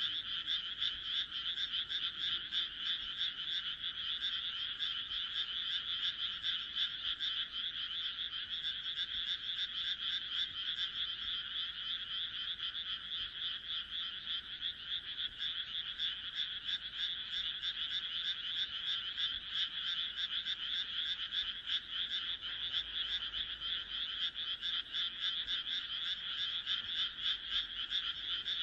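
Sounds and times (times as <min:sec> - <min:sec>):
frog chorus of pulsed croaks: 0:00.0 - 0:28.6.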